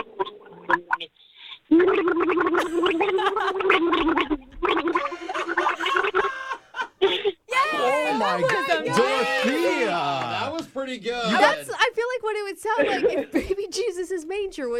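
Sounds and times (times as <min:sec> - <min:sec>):
person gargling water to a tune: 0:00.0 - 0:01.1, 0:01.7 - 0:06.3
laughter: 0:05.0 - 0:10.6, 0:12.8 - 0:13.7
speech: 0:10.9 - 0:14.7.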